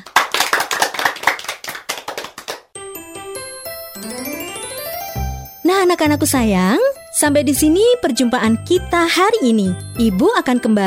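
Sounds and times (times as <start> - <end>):
clapping hands: 0.0 - 2.7
speech: 5.8 - 10.8.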